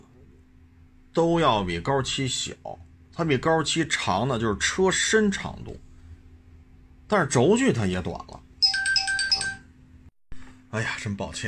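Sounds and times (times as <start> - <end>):
speech: 1.2 - 5.9, 7.1 - 8.4, 10.7 - 11.4
phone ringtone: 8.6 - 9.7.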